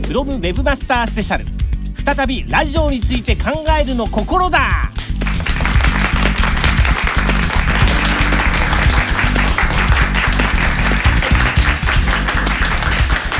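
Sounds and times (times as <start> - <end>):
speech: 0.1 - 4.8
studio audience applause: 5.0 - 13.3.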